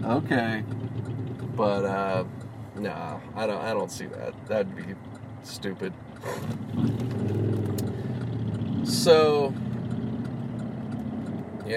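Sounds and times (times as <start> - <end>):
speech: 0.0 - 1.0, 1.6 - 7.7, 8.8 - 9.7
Harley-Davidson motorcycles rumbling past: 0.2 - 1.8, 6.1 - 11.7.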